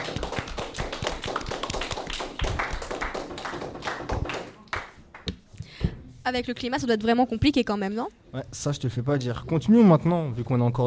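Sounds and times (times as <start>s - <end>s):
audience applause: 0.0s - 5.0s
speech: 6.3s - 10.8s.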